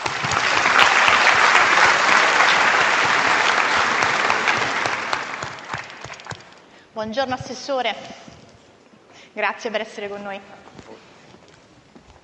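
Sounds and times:
audience applause: 0.0 - 6.6
speech: 7.0 - 8.3, 9.4 - 10.7.

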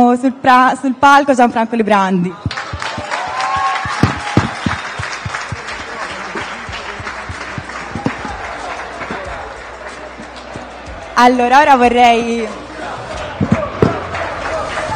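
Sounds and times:
speech: 0.0 - 2.6, 11.2 - 12.6
audience applause: 2.5 - 11.1, 12.8 - 14.9.

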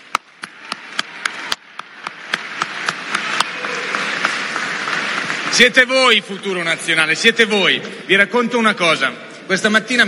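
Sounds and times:
audience applause: 0.0 - 7.0
speech: 5.6 - 10.0.

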